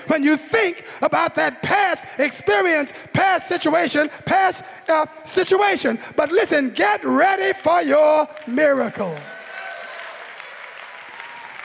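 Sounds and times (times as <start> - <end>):
speech: 0.1 - 9.3
crowd clapping: 8.2 - 11.6.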